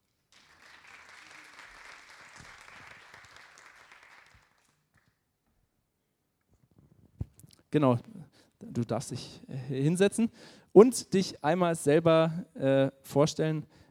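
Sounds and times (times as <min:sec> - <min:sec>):
thunderous audience applause: 0:00.3 - 0:04.8
speech: 0:07.7 - 0:08.1, 0:08.8 - 0:13.8.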